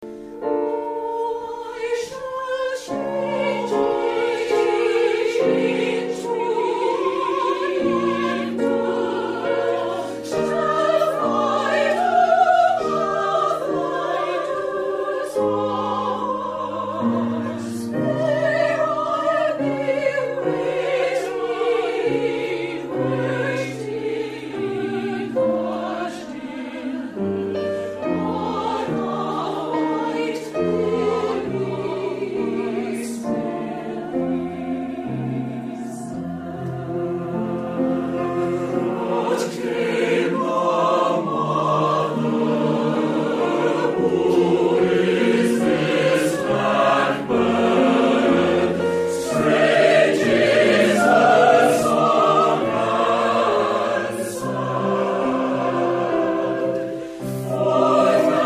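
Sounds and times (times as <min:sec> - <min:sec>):
wedding song from Poniky: 0:00.0 - 0:58.4.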